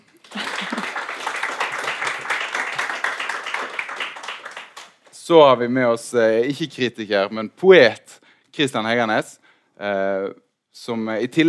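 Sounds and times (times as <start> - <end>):
audience applause: 0.1 - 4.9
speech: 5.3 - 11.4.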